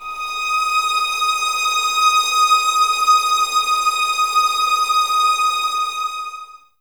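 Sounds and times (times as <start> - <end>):
11 muted violins playing D sharp 6: 0.0 - 6.6.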